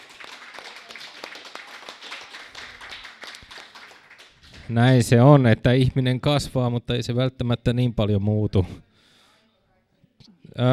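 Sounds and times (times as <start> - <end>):
audience applauding: 0.0 - 5.1
speech: 4.7 - 8.9, 10.5 - 10.7.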